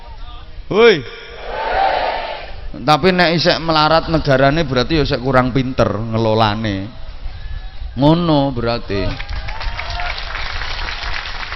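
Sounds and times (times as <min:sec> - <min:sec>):
speech: 0:00.7 - 0:01.2, 0:02.8 - 0:07.0, 0:08.0 - 0:09.3
audience clapping: 0:09.1 - 0:11.5.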